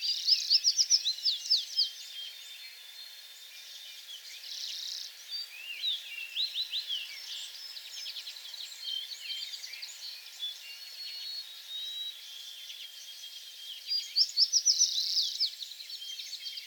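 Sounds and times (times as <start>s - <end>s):
several small birds twittering: 0.0s - 16.6s.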